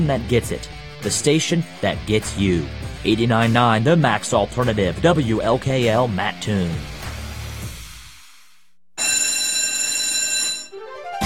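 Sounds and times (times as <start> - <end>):
speech: 0.0 - 6.9
electric school bell ringing: 9.0 - 11.2.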